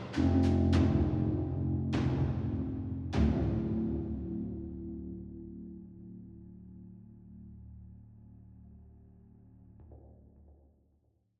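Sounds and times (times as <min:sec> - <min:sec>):
tension music block: 0:00.2 - 0:07.7.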